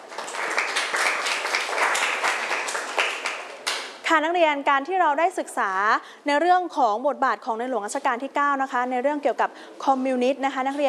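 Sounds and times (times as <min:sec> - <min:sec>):
classroom students clapping: 0:00.0 - 0:04.0
speech: 0:04.1 - 0:10.8.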